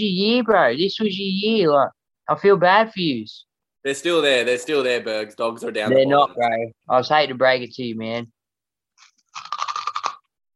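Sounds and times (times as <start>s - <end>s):
speech: 0.0s - 8.4s
person chewing near microphone: 9.0s - 10.4s.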